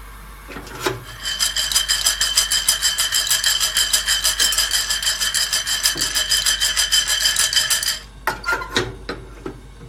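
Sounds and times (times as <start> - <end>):
green coffee beans being roasted: 0.5 - 9.4
dense steady rasping rattle with a bright whine: 0.6 - 8.1.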